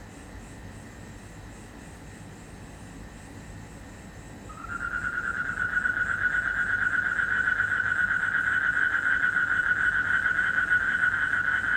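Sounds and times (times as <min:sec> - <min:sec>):
frog trilling in Indonesia: 0:04.5 - 0:11.7.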